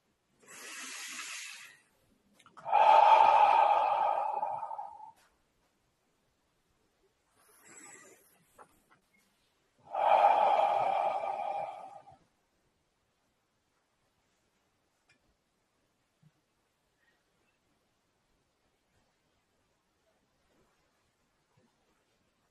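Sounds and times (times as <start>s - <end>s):
slow deep breaths in through the nose and out through the mouth: 0.4s - 5.3s, 9.8s - 12.2s.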